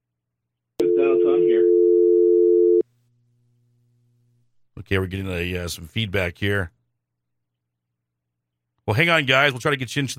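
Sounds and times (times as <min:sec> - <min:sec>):
telephone dial tone: 0:00.8 - 0:02.8
speech: 0:04.8 - 0:06.8, 0:08.9 - 0:10.1.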